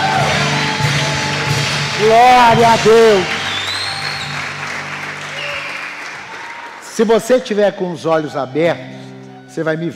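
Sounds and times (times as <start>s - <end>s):
audience applauding: 0.0s - 7.6s
speech: 2.0s - 3.4s, 7.0s - 9.9s.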